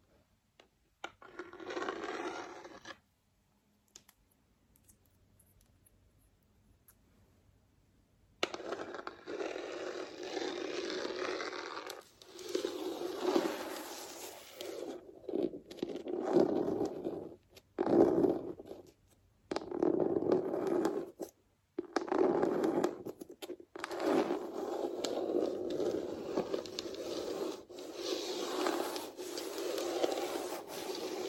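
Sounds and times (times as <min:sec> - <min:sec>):
fake nails scratching a floor: 0:01.0 - 0:03.1, 0:08.4 - 0:31.2.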